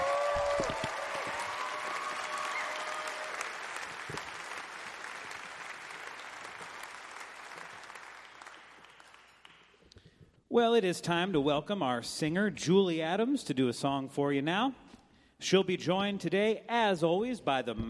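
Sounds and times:
audience applause at a live music show: 0.0 - 9.7
speech: 10.6 - 17.8.

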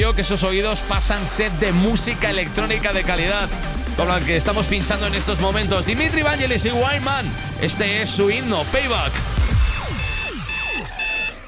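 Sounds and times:
speech: 0.1 - 9.6
electronic alarm clock ringing: 8.7 - 11.4.

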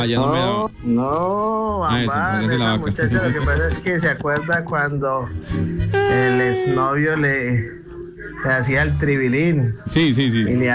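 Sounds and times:
speech: 0.0 - 10.7
person imitating a cow mooing: 6.0 - 6.9.

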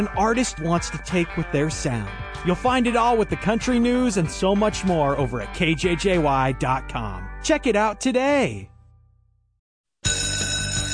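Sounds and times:
speech: 0.0 - 8.7
school bell ringing: 10.0 - 10.9.

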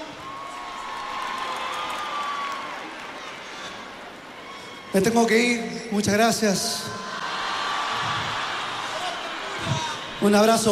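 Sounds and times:
audience applauding and cheering for a performer: 0.0 - 5.0, 7.1 - 10.7
speech: 4.9 - 7.0, 10.2 - 10.7.

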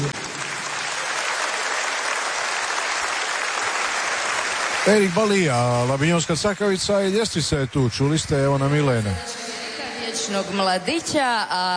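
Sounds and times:
audience applauding an orchestra at a music show in Istria, Croatia: 0.0 - 9.3
speech: 4.9 - 9.4, 10.1 - 11.7.

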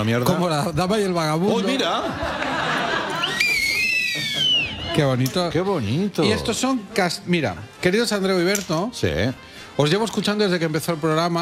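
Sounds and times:
speech: 0.0 - 2.7, 4.2 - 11.3
laughter: 1.3 - 6.8
two knotted whistles whistle tone: 3.2 - 4.9.

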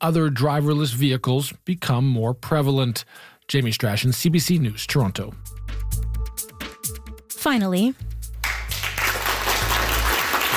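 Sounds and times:
speech: 0.0 - 5.7, 7.4 - 8.1
applause from a viewing party at the University of Toronto: 8.4 - 10.5.

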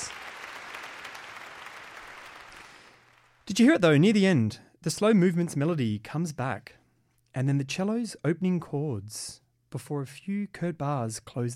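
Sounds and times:
rapturous concert applause from a large audience: 0.0 - 3.4
speech: 3.5 - 6.8, 7.4 - 11.5.

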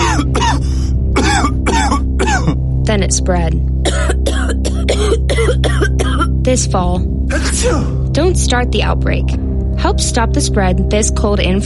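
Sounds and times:
harsh coughing: 0.0 - 2.7, 3.8 - 6.4
speech: 2.9 - 4.2, 6.5 - 11.6.

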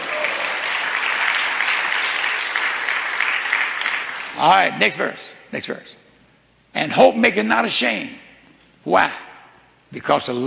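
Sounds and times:
church congregation clapping hands: 0.0 - 5.2
speech: 4.4 - 6.0, 6.8 - 8.2, 8.8 - 9.2, 9.9 - 10.4.

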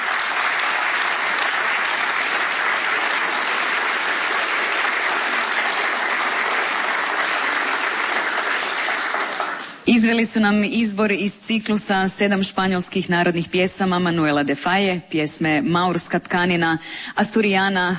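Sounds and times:
audience applause for an opera singer and a young classical guitarist: 0.0 - 9.8
speech: 9.9 - 17.9.

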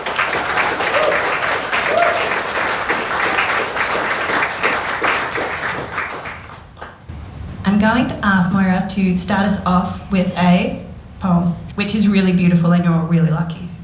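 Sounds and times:
audience round of applause: 0.0 - 7.1
speech: 7.8 - 13.7.

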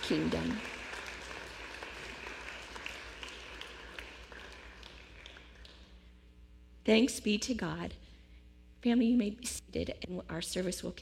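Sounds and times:
audience applause: 0.0 - 5.8
speech: 0.1 - 0.8, 6.8 - 8.0, 8.8 - 11.0.

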